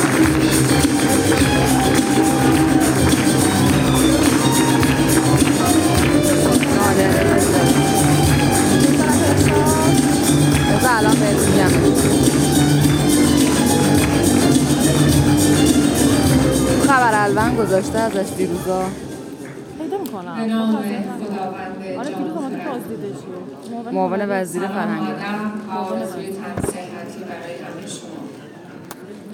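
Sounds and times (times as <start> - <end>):
audience applause: 0.0 - 16.4
crowd murmur and voices: 0.0 - 25.0
speech: 17.9 - 19.0, 23.9 - 26.7.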